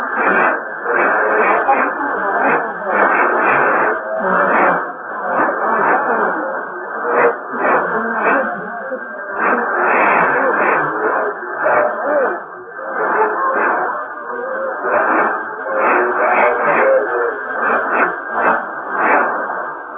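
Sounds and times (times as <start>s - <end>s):
radio signal at 4777 kHz: 0.0s - 19.9s.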